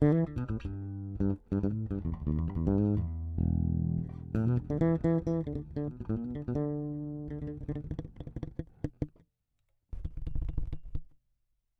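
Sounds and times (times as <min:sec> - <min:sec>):
bass through magnetic and piezo pickups: 0:00.0 - 0:09.1.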